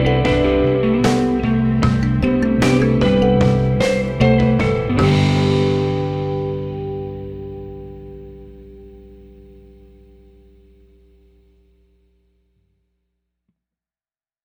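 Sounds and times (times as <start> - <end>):
slow instrumental music: 0.0 - 9.6.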